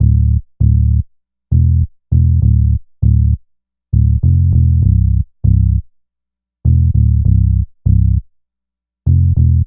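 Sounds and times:
synth bass: 0.0s - 3.4s, 4.0s - 5.8s, 6.7s - 8.2s, 9.1s - 9.6s.

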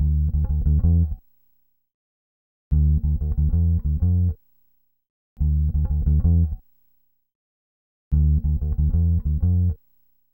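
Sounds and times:
hip hop and RnB bass line in D minor: 0.0s - 1.2s, 2.7s - 4.3s, 5.4s - 6.6s, 8.1s - 9.8s.

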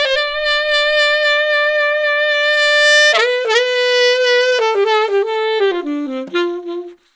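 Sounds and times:
disco saxophone: 0.0s - 7.1s.

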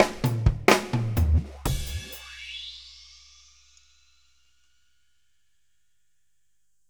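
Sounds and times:
drum fills: 0.0s - 3.1s.

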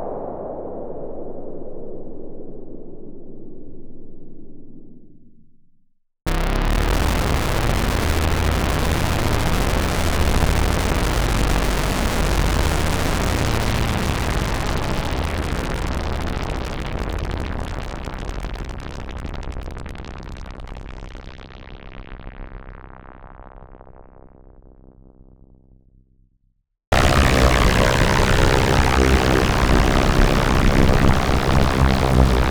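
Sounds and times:
Roland MKS-80 effects: 6.3s - 22.3s, 26.9s - 32.4s.

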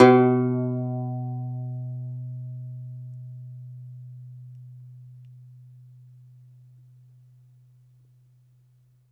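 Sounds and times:
segundo domra plucked strings: 0.0s - 5.4s.

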